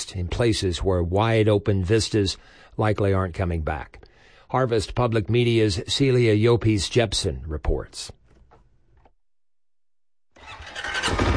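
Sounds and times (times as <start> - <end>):
speech: 0.1 - 8.2
four-wheeler engine starting on a southeast Nebraska ranch: 10.4 - 11.3.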